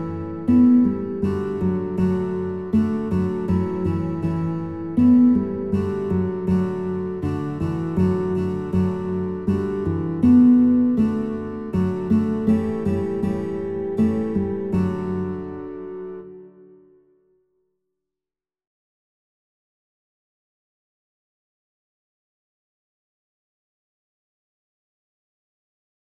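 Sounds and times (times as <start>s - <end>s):
guitar: 0.0s - 17.4s.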